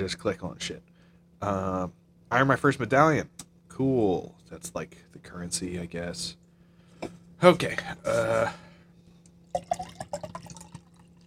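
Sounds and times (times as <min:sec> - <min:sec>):
speech: 0:00.0 - 0:06.4, 0:07.0 - 0:08.7
beer poured into a glass: 0:09.5 - 0:11.2.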